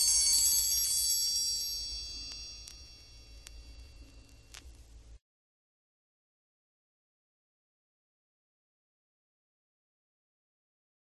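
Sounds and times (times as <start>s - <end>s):
gong: 0.0s - 4.6s
suspended cymbal struck: 0.0s - 4.6s
triangle: 0.0s - 5.0s.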